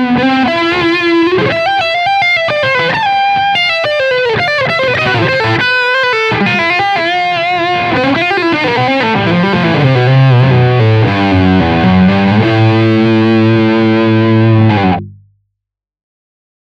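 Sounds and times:
high gain lead guitar: 0.0s - 15.2s.

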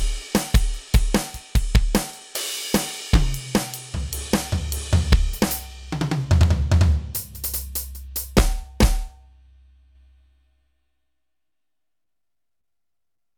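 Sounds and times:
Roland SPD 20 PRO electronic drum kits: 0.0s - 9.2s.

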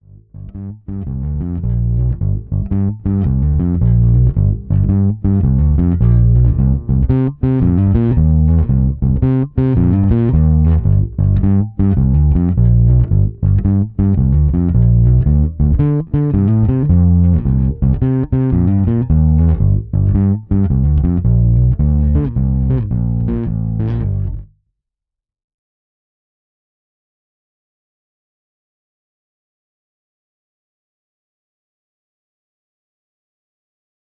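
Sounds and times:
Fender amp with more overdrive: 1.2s - 24.4s.

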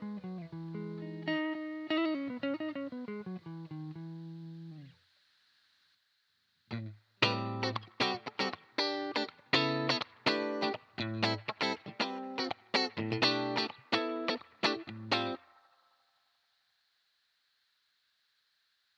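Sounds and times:
EHX 5150 clean electric guitar DI out: 0.0s - 5.0s, 6.7s - 15.6s.

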